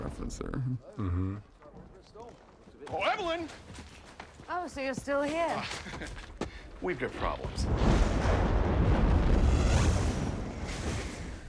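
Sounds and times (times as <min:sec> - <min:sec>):
speech: 0:00.2 - 0:08.5
fireballs coming down in a film scene from The Mummy: 0:07.0 - 0:11.4.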